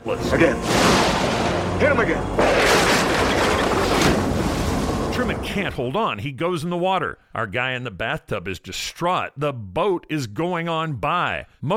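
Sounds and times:
thunder crash in a storm: 0:00.6 - 0:05.5
speech: 0:05.6 - 0:11.7.

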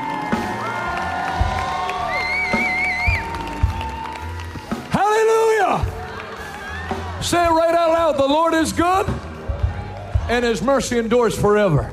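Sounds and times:
audience clapping hands: 0:00.0 - 0:11.1
speech: 0:07.2 - 0:09.2, 0:10.3 - 0:11.9.

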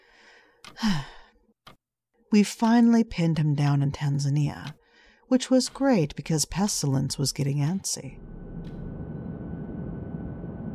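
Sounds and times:
speech: 0:00.8 - 0:01.1, 0:02.3 - 0:08.5
aircraft in flight nearing landing, engine and airflow roar: 0:08.2 - 0:10.7.

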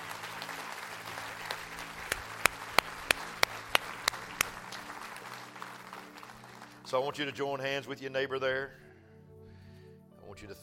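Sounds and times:
audience clapping hands: 0:00.0 - 0:07.0
speech: 0:06.9 - 0:08.8, 0:10.4 - 0:10.6.

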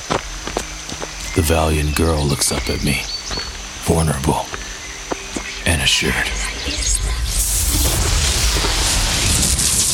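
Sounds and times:
speech: 0:01.4 - 0:04.6, 0:05.8 - 0:07.2
lightning bolt strike: 0:07.2 - 0:09.9.

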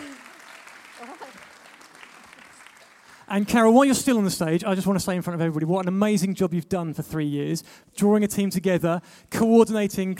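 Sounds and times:
audience applause: 0:00.0 - 0:03.9
speech: 0:03.3 - 0:10.1.

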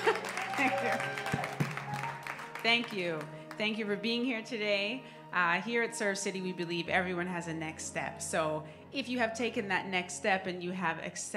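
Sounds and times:
loud audience applause: 0:00.0 - 0:03.6
speech: 0:00.6 - 0:01.3, 0:02.6 - 0:11.3.

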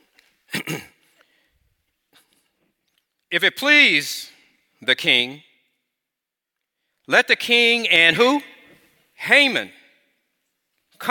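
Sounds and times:
person acting out a throat clearing: 0:00.5 - 0:01.2
speech: 0:00.7 - 0:00.9, 0:03.4 - 0:05.5, 0:07.1 - 0:08.5, 0:09.2 - 0:09.8.

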